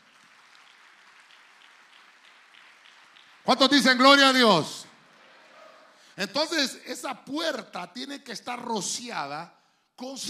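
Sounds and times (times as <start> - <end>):
audience clapping: 0.0 - 6.1
speech: 3.4 - 4.8, 6.2 - 10.2.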